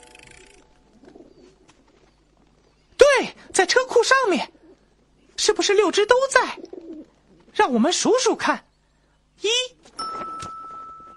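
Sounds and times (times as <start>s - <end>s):
pigeons cooing: 0.9s - 2.6s, 4.4s - 5.2s, 6.2s - 7.5s
speech: 3.6s - 4.6s, 5.5s - 6.7s, 7.6s - 8.6s.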